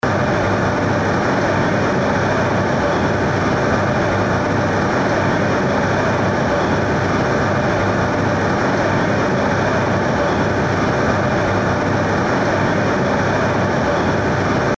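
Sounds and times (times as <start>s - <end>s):
turbine of the Kakhovka hydroelectric power station: 0.0s - 14.7s.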